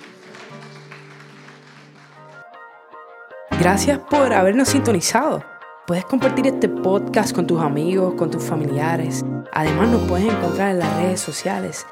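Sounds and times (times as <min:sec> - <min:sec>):
church audience applause: 0:00.0 - 0:02.4
speech: 0:03.6 - 0:11.8.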